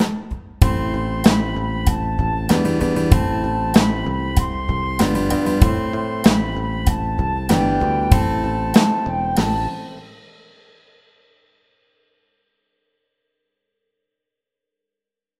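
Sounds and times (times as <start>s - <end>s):
crazy beat: 0.0s - 10.1s.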